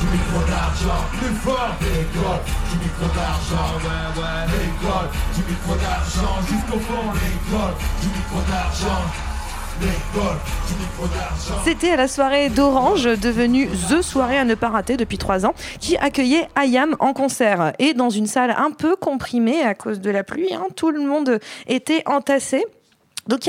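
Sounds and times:
crowd shouting in rhythm: 0.0 - 11.6
rhythmic clapping: 0.0 - 15.3
speech: 0.2 - 23.4.

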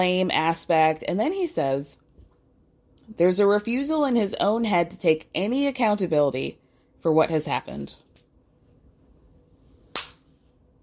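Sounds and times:
speech: 0.0 - 2.0, 3.1 - 8.0
single hand clap: 9.9 - 10.2.

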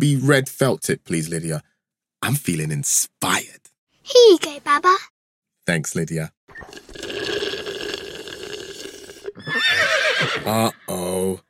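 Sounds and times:
speech: 0.0 - 5.1, 5.7 - 7.5, 9.4 - 11.4
bubbly gurgling liquid slurping: 6.5 - 9.4
unicorn neighing: 9.4 - 11.2.

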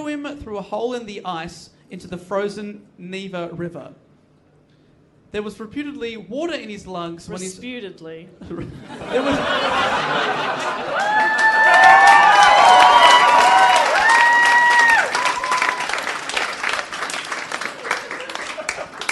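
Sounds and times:
speech: 0.3 - 4.0, 5.3 - 12.1
laughter: 8.4 - 11.5, 17.7 - 19.0
standing ovation applause: 10.6 - 19.0.

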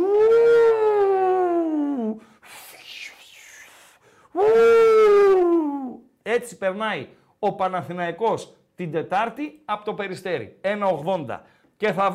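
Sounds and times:
voice imitating howling desert wind: 0.0 - 6.0
speech: 6.4 - 12.1.

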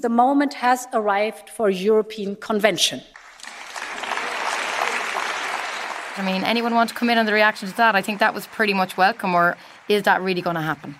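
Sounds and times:
speech: 0.0 - 3.2, 6.2 - 10.9
parliament applause: 3.2 - 10.9.

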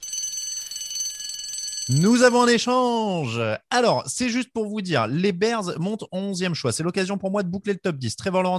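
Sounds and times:
podcast jingle: 1.2 - 3.6
speech: 1.9 - 8.5.

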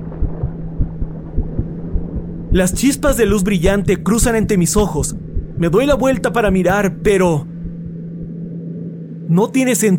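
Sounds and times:
heartbeat pounding: 0.0 - 8.4
steady low hum: 0.0 - 9.5
speech: 2.5 - 7.5, 9.3 - 9.9.

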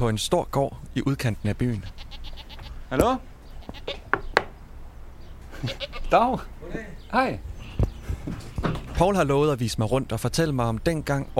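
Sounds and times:
speech: 0.0 - 2.2, 2.9 - 3.9, 5.6 - 7.5, 9.0 - 11.3
goats bleating on a large farm on the edge of Borup, Denmark: 1.7 - 2.9, 3.5 - 4.1, 5.5 - 6.2.

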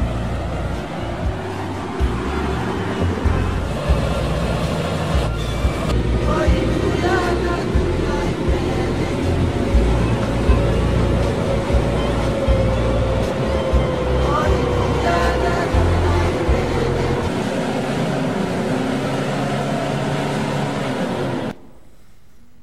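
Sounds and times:
vehicle rumbling and rattling on a rough road in Papua New Guinea: 0.0 - 21.9.

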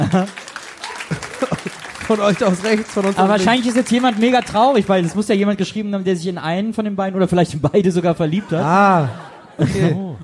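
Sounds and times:
people laughing: 0.0 - 5.4, 8.2 - 10.2
audience applause: 0.0 - 5.6
speech: 0.1 - 0.4, 2.1 - 10.2.

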